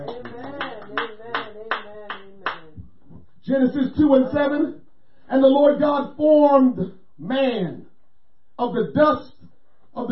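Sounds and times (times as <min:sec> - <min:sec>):
congregation clapping hands during a church sermon: 0:00.0 - 0:02.8
speech: 0:03.5 - 0:07.9, 0:08.6 - 0:09.3.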